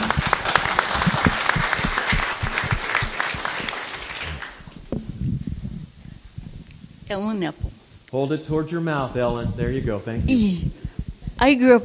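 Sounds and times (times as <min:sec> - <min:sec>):
audience applause: 0:00.0 - 0:04.8
speech: 0:07.1 - 0:10.8, 0:11.4 - 0:11.8.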